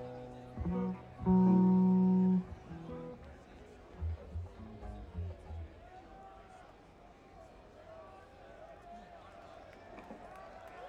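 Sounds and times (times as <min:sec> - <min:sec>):
instrument tuning: 0:00.0 - 0:03.4, 0:04.0 - 0:05.7.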